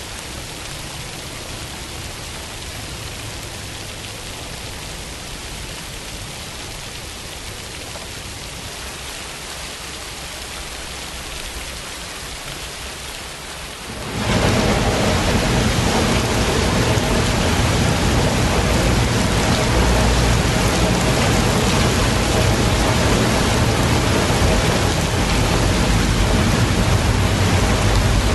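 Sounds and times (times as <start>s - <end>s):
rain: 0.0s - 28.3s.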